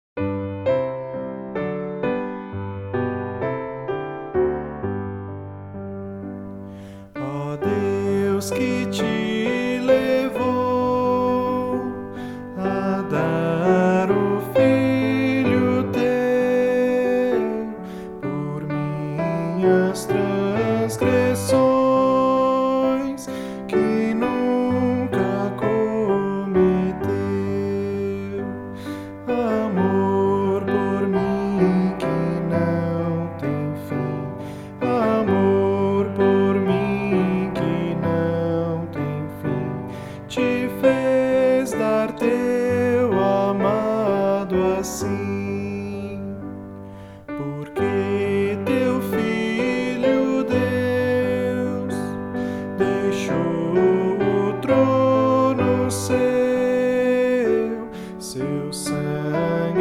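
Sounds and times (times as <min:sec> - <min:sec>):
piano: 0:00.0 - 0:59.8
person singing: 0:06.2 - 0:59.8.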